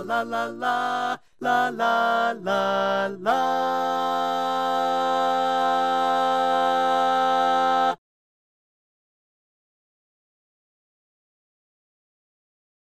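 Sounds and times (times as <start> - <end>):
baritone and grand chorus singing: 0.0 - 8.0.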